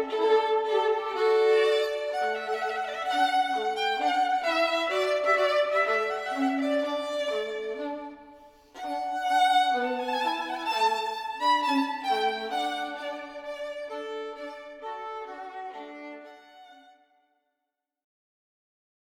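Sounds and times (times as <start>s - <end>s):
two violins playing: 0.0s - 17.0s.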